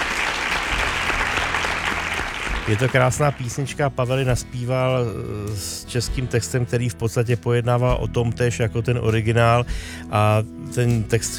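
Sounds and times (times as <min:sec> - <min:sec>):
applause: 0:00.0 - 0:03.8
speech: 0:02.7 - 0:11.3.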